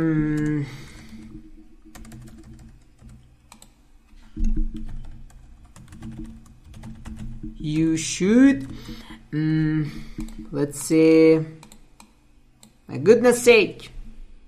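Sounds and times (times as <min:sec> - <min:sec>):
speech: 0:00.0 - 0:00.8, 0:07.7 - 0:11.6, 0:12.9 - 0:13.9
low steady hum: 0:00.0 - 0:14.4
computer keyboard typing a summary in OneNote: 0:00.3 - 0:03.8, 0:04.4 - 0:09.1, 0:10.2 - 0:10.5, 0:11.6 - 0:12.8.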